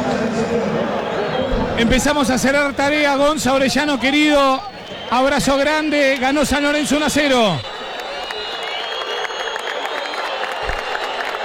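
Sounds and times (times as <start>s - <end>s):
San Lorenzo stadium crowd applauding: 0.0s - 11.4s
speech: 1.8s - 7.7s.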